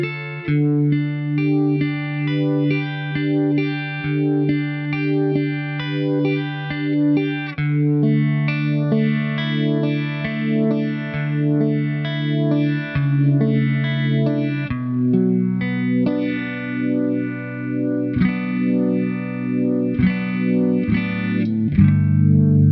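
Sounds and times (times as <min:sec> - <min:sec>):
Uni-Vibe effect pedal sound: 0:00.0 - 0:22.6.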